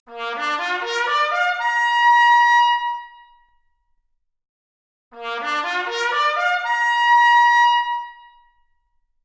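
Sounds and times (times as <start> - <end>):
trumpet arpeggio: 0.2 - 1.9, 5.2 - 7.8.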